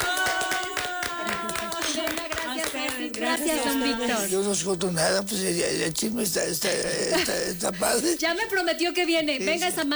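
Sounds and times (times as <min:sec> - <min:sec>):
audience applause: 0:00.0 - 0:03.0
speech: 0:03.4 - 0:09.9.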